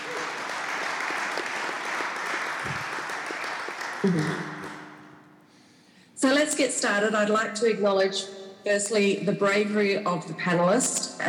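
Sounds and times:
audience applause: 0.0 - 5.0
speech: 4.0 - 4.5, 6.5 - 11.2.

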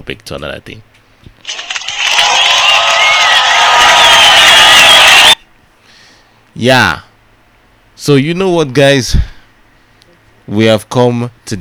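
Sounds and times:
speech: 0.0 - 1.7, 6.6 - 7.1, 8.0 - 9.3, 10.5 - 11.5
soundboard round of applause effect: 1.5 - 5.4.

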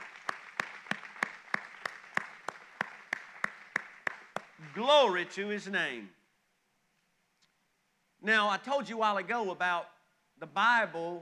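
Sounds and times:
applause: 0.0 - 5.2
speech: 4.8 - 6.2, 8.2 - 11.1.

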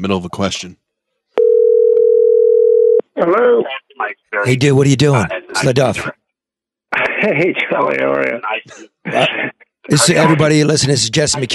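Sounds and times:
speech: 0.0 - 0.8, 3.2 - 6.2, 6.9 - 11.5
telephone line tone while dialing a call: 1.4 - 3.0.

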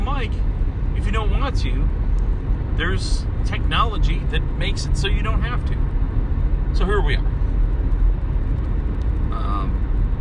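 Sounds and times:
car heard from inside while driving home: 0.0 - 10.2
speech: 0.2 - 0.5, 1.1 - 2.0, 2.8 - 5.9, 6.7 - 7.3.

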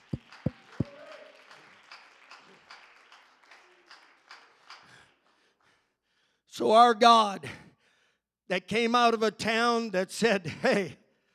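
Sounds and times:
audience clapping: 0.0 - 5.7
speech: 6.6 - 7.6, 8.5 - 11.0.

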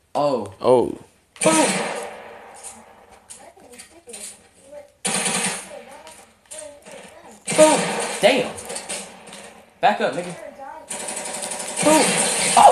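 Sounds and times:
speech: 0.2 - 1.9, 7.6 - 8.6, 9.8 - 10.5, 11.8 - 12.7
video game gunfire: 1.4 - 3.1, 5.0 - 12.7.

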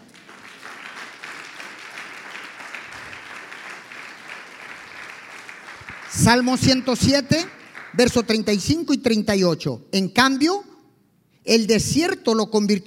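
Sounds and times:
audience clapping: 0.0 - 8.7
speech: 6.1 - 10.7, 11.4 - 12.8.

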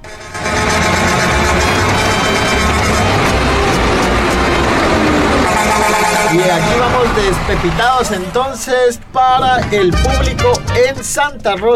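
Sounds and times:
car horn honking: 0.0 - 8.8
noisy rumbling wash: 0.0 - 11.4
speech: 7.5 - 11.7.

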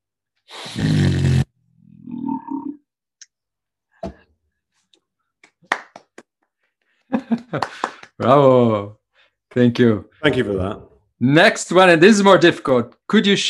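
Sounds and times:
person imitating a lion's roar: 0.8 - 2.8
speech: 7.5 - 13.4.

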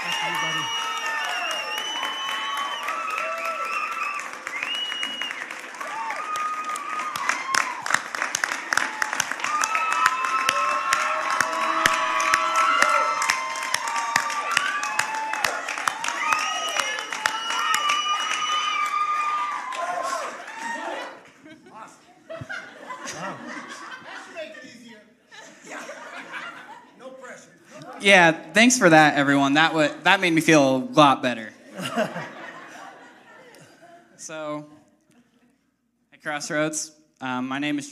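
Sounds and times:
people laughing: 0.0 - 0.8, 20.8 - 28.0, 31.6 - 34.2
standing audience clapping at a campus gathering: 0.0 - 21.5
speech: 28.0 - 32.4, 36.2 - 37.8.

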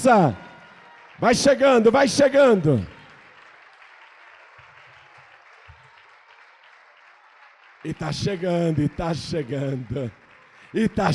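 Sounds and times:
speech: 0.0 - 0.4, 1.2 - 3.0, 7.8 - 11.1
church audience applauding: 0.0 - 11.1.

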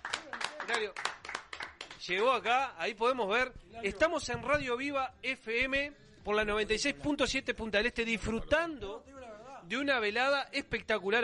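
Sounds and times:
scattered clapping from a small group: 0.0 - 2.4
speech: 0.7 - 1.1, 2.0 - 11.2.

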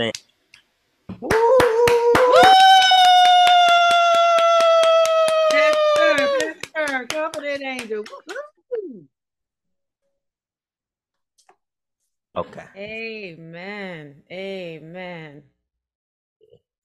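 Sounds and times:
speech: 0.0 - 0.2, 7.6 - 8.4, 12.4 - 15.5
long held voiced cheer: 1.2 - 6.6
church congregation clapping: 1.2 - 8.4.

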